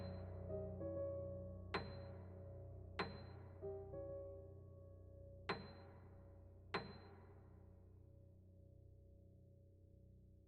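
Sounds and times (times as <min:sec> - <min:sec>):
piano piece: 0:00.0 - 0:06.4.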